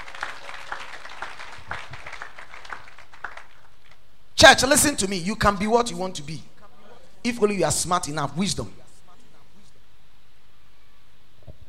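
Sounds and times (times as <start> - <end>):
hands clapping: 0.0 - 4.0
speech: 4.4 - 6.5, 7.2 - 8.8.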